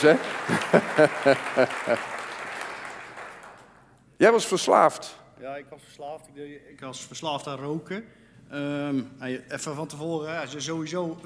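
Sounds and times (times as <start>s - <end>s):
speech: 0.0s - 2.2s, 4.2s - 11.2s
laughter: 0.0s - 2.4s
audience applause: 0.0s - 3.7s.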